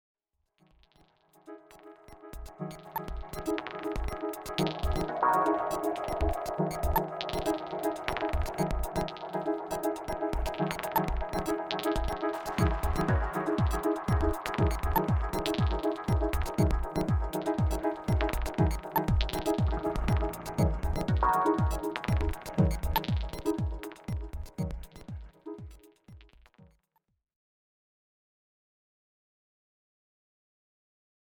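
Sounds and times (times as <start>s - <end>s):
dub music: 1.7s - 26.3s.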